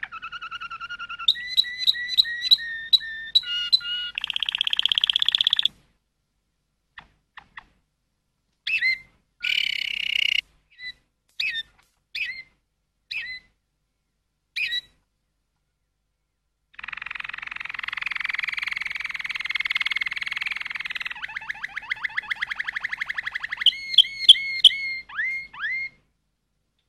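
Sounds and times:
Waterslager canary song: 0:00.0 - 0:05.8, 0:08.6 - 0:13.6, 0:14.6 - 0:15.0, 0:16.7 - 0:26.0.

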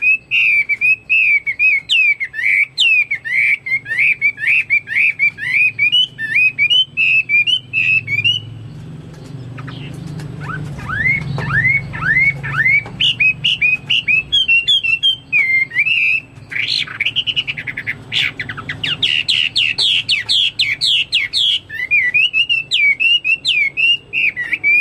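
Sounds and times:
Chinese hwamei whistling song: 0:00.0 - 0:08.6, 0:09.6 - 0:24.7.

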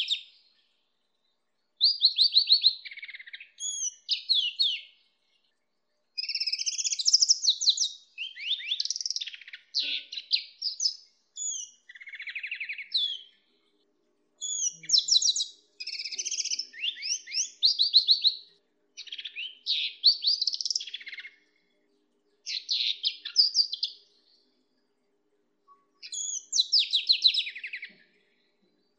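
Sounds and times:
hybrid greenfinch canary: 0:01.8 - 0:04.9, 0:06.2 - 0:13.4, 0:14.4 - 0:18.4, 0:19.0 - 0:21.4, 0:22.5 - 0:24.0, 0:26.0 - 0:28.2.

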